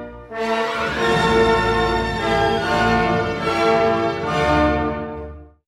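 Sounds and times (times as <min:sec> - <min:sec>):
symphony first movement: 0:00.2 - 0:05.4.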